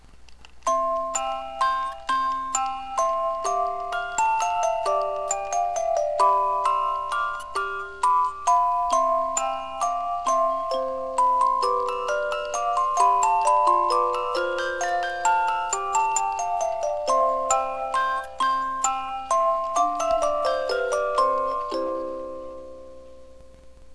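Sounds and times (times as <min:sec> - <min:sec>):
waltz music: 0:00.4 - 0:23.8.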